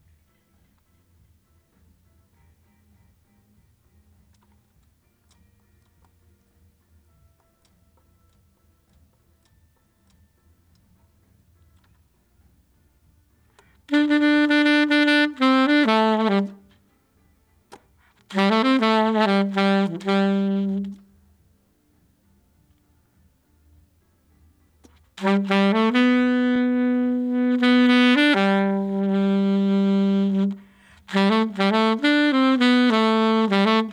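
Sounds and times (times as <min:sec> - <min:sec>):
saxophone: 0:13.9 - 0:16.9, 0:18.2 - 0:21.3, 0:24.9 - 0:33.9.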